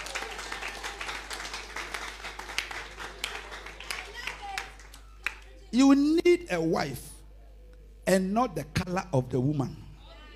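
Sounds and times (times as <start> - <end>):
audience clapping: 0.0 - 5.5
low electrical hum: 0.0 - 10.3
speech: 5.7 - 7.1, 8.1 - 9.8.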